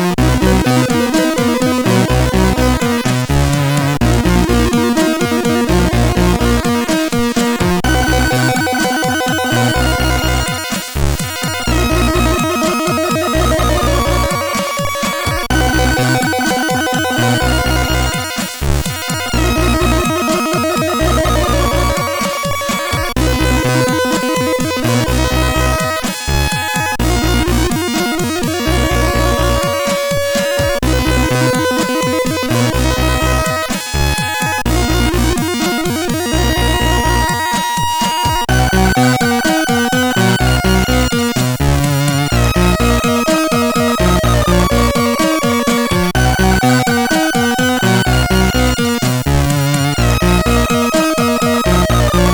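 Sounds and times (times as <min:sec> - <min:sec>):
slow metal on SID CSG8580R5 chip: 0:00.1 - 0:52.3.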